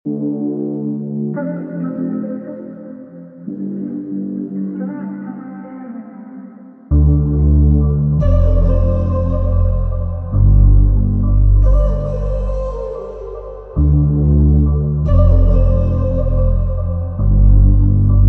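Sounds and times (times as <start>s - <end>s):
music in F major: 0.1s - 18.2s.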